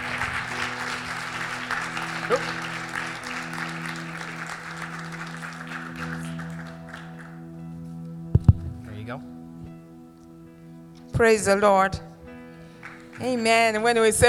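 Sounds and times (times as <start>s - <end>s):
audience applause at a Sunday church service: 0.0s - 7.4s, 12.8s - 13.7s
speech: 2.3s - 2.5s, 11.2s - 12.1s, 13.2s - 14.2s.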